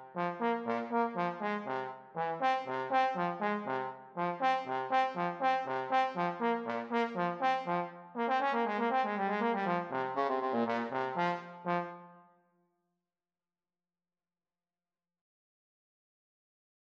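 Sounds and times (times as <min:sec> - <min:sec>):
trumpet and trombone playing a classical dance: 0:00.1 - 0:12.1.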